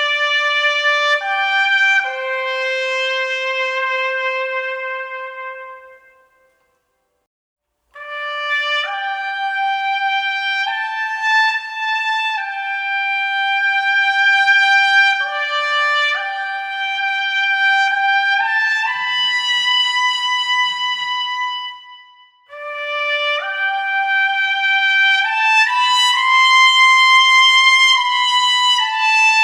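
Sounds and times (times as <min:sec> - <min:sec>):
military trumpet: 0:00.0 - 0:06.9, 0:08.0 - 0:29.4.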